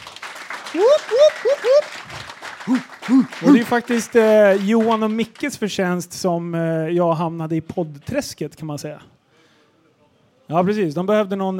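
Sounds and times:
audience applause: 0:00.0 - 0:05.5
whoops and cheers: 0:00.7 - 0:02.1, 0:02.7 - 0:03.6
speech: 0:00.7 - 0:09.2, 0:10.5 - 0:11.5.

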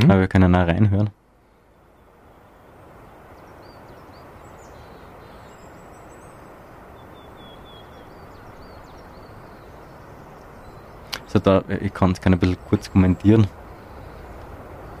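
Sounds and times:
speech: 0:00.0 - 0:01.2, 0:11.3 - 0:13.6
wind rustling in forest leaves: 0:00.0 - 0:14.9.

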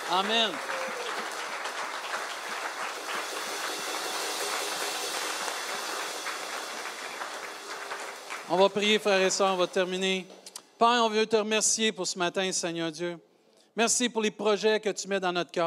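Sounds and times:
audience applause: 0:00.0 - 0:09.8
speech: 0:00.1 - 0:00.8, 0:08.5 - 0:15.6.

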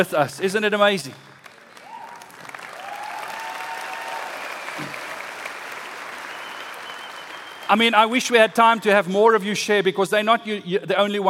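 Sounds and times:
speech: 0:00.0 - 0:01.3, 0:07.7 - 0:11.2
crowd clapping: 0:01.2 - 0:08.9
whistles: 0:03.8 - 0:05.1, 0:06.2 - 0:07.8.

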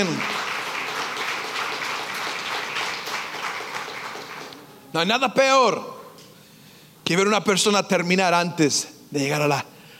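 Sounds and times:
speech: 0:00.0 - 0:00.4, 0:04.9 - 0:05.9, 0:07.1 - 0:09.7
applause: 0:00.0 - 0:04.7.

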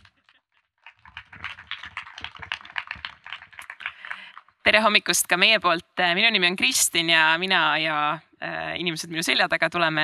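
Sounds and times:
audience applause: 0:00.9 - 0:04.5
speech: 0:04.7 - 0:10.0.

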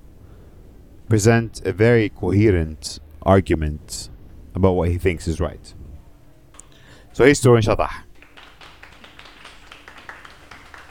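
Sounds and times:
speech: 0:01.1 - 0:05.8, 0:07.2 - 0:08.1
audience applause: 0:08.2 - 0:10.8.

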